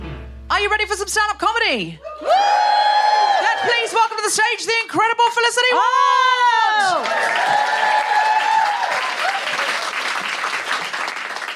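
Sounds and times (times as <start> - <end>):
speech: 0.6 - 8.1
crowd applause: 2.0 - 4.0, 6.8 - 11.5
whoops and cheers: 2.0 - 4.0, 5.8 - 10.0.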